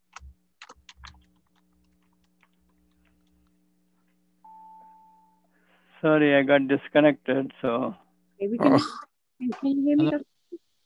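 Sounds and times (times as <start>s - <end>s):
steady electrical hum: 0.0s - 10.4s
typing on a computer keyboard: 0.1s - 3.4s
speech: 6.0s - 10.3s.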